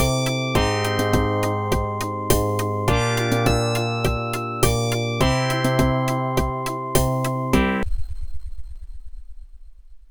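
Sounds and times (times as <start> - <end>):
AdLib OPL2 FM synth music: 0.0 - 7.9.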